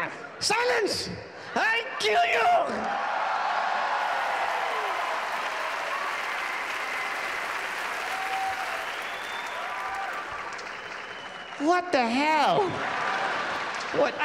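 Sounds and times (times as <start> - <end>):
crowd noise: 0.1 - 14.2
speech: 0.4 - 3.1, 11.6 - 13.0, 13.9 - 14.2
audience applause at a comedy show in Abu Dhabi: 3.8 - 14.2.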